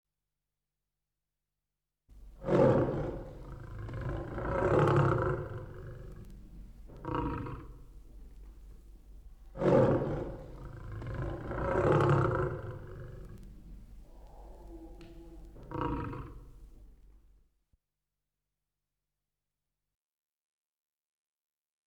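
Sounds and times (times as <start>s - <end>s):
tiger: 2.3s - 17.2s.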